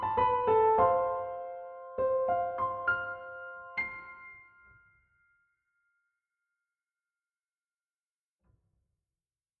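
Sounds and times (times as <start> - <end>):
piano music: 0.0 - 5.0.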